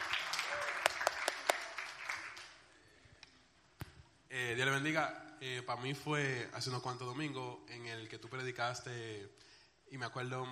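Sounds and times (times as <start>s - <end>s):
audience applause: 0.0s - 2.6s
speech: 4.5s - 10.5s.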